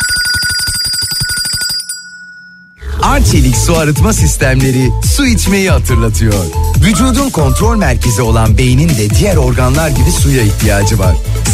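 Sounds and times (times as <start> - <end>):
bell ringing in a fast rattling trill: 0.0 - 3.8
speech: 3.2 - 11.5.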